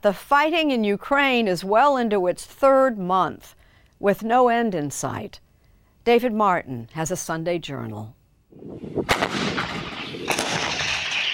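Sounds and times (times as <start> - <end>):
speech: 0.0 - 5.4, 6.0 - 9.6
artillery fire: 8.6 - 11.3.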